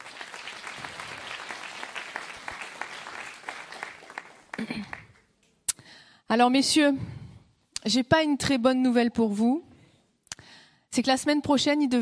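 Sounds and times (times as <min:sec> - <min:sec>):
audience applause: 0:00.0 - 0:05.2
speech: 0:04.6 - 0:05.0, 0:06.3 - 0:07.2, 0:07.9 - 0:09.7, 0:10.9 - 0:12.0.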